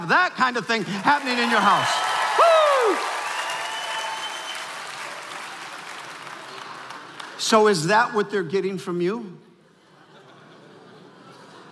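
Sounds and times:
speech: 0:00.0 - 0:03.1, 0:07.4 - 0:09.5
audience applause: 0:00.7 - 0:07.4
faint cheers: 0:01.4 - 0:05.0
laughter: 0:09.7 - 0:11.6.

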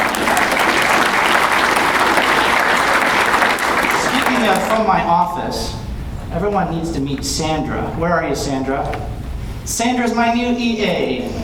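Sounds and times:
crowd round of applause: 0:00.0 - 0:05.0
speech: 0:04.4 - 0:11.4.

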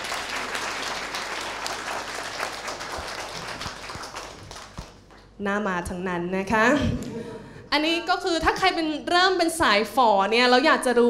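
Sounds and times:
crowd applause: 0:00.0 - 0:05.1
speech: 0:05.4 - 0:11.0.

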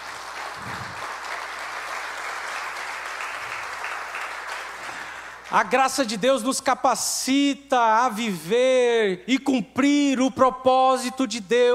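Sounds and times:
audience clapping: 0:00.0 - 0:05.8
speech: 0:05.5 - 0:11.7.

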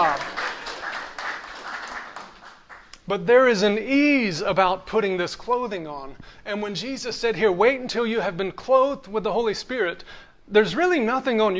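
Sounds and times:
audience clapping: 0:00.0 - 0:03.1
speech: 0:03.1 - 0:11.5.

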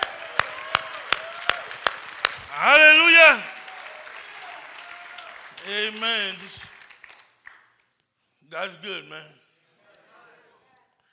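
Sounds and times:
audience clapping: 0:00.0 - 0:08.0
speech: 0:02.6 - 0:03.5, 0:05.7 - 0:06.7, 0:08.5 - 0:09.4.

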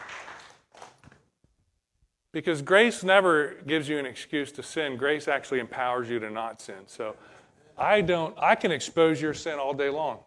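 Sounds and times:
audience clapping: 0:00.0 - 0:01.2
speech: 0:02.3 - 0:10.2.

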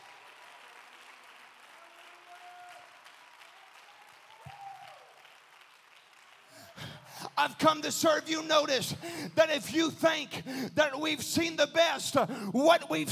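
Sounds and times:
audience clapping hands: 0:00.0 - 0:07.8
speech: 0:06.8 - 0:13.1.

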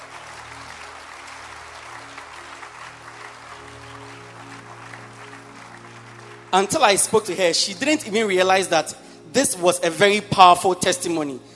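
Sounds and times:
audience clapping: 0:00.0 - 0:07.9
speech: 0:06.5 - 0:11.5.

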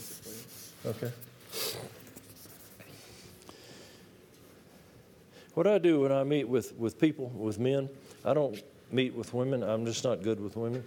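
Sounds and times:
erasing writing from a board: 0:00.0 - 0:01.1
speech: 0:00.8 - 0:02.0, 0:05.6 - 0:10.8.

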